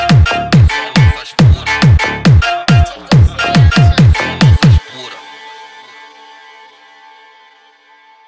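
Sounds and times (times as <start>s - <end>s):
mega funk pancadao music: 0.0s - 5.8s.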